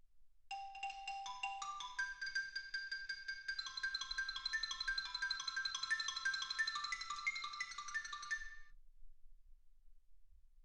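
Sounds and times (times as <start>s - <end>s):
xylophone: 0.5s - 8.7s.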